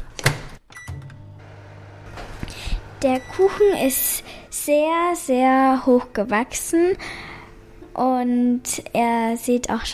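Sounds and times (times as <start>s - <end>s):
microwave oven running: 0.8s - 4.0s
speech: 3.0s - 7.2s, 8.0s - 9.9s.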